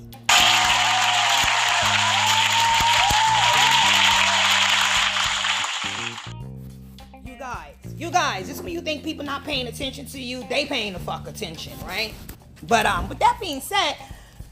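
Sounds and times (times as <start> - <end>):
applause: 0.3 - 6.3
speech: 9.0 - 14.1.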